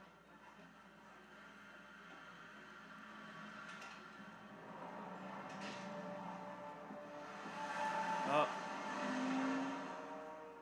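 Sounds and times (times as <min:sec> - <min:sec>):
businessman's car driving away: 0:01.1 - 0:10.6
speech: 0:08.3 - 0:08.6.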